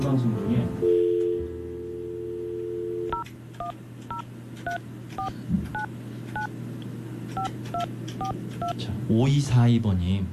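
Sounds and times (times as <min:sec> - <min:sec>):
speech: 0:00.0 - 0:00.9, 0:08.8 - 0:10.3
telephone dial tone: 0:00.8 - 0:03.2
DTMF keypad beeps of a telephone number being dialed: 0:03.1 - 0:06.5.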